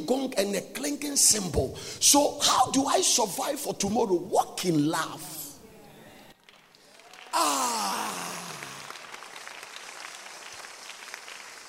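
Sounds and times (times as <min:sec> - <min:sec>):
speech: 0:00.0 - 0:05.4
crowd clapping: 0:06.4 - 0:11.6.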